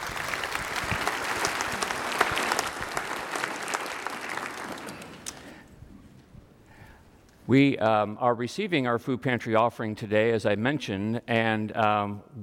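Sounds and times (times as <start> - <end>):
audience applause: 0.0 - 5.7
speech: 7.5 - 12.4.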